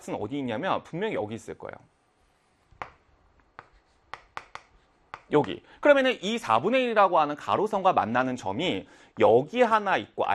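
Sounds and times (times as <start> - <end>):
speech: 0.0 - 2.0, 5.3 - 10.3
pen strokes on a board sketching a cosine graph: 2.4 - 5.3.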